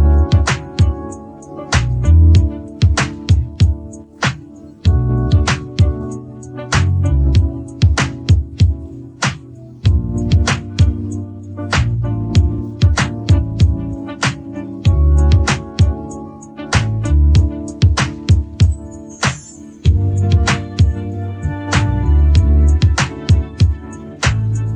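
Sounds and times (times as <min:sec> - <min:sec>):
instrumental music without vocals: 0:00.0 - 0:24.7.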